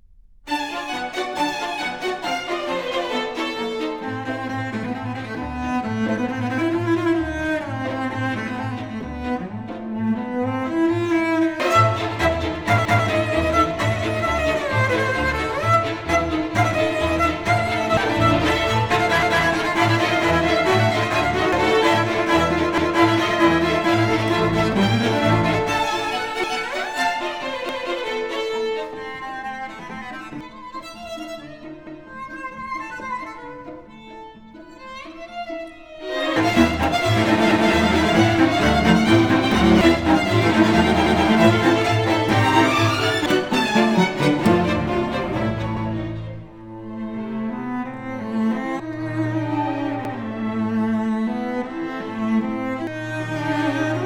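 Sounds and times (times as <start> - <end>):
cello with strings: 0.4 - 54.0.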